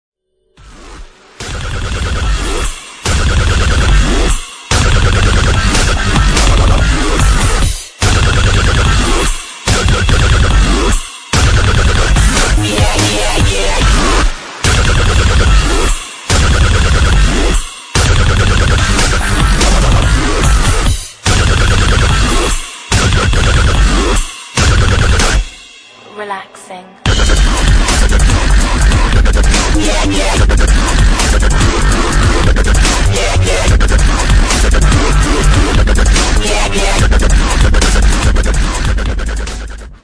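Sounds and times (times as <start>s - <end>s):
guided relaxation dub music: 1.5s - 40.0s.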